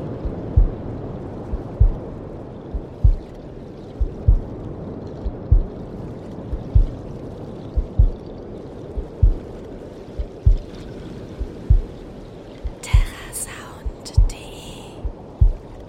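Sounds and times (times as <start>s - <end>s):
waves: 0.0s - 15.8s
heartbeat: 0.2s - 0.8s, 1.5s - 2.1s, 2.7s - 3.4s, 4.0s - 4.6s, 5.2s - 5.8s, 6.5s - 7.0s, 7.7s - 8.2s, 9.0s - 9.5s, 10.2s - 10.8s, 11.4s - 12.0s, 12.6s - 15.8s.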